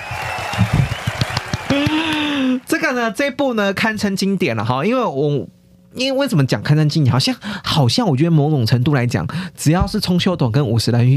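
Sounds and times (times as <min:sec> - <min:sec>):
applause: 0:00.0 - 0:02.7
speech: 0:01.7 - 0:11.1.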